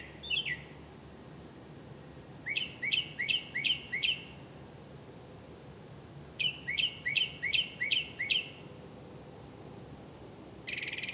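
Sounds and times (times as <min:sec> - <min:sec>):
bird chirps: 0:00.0 - 0:00.8, 0:02.4 - 0:04.4, 0:06.4 - 0:08.7, 0:10.7 - 0:11.1.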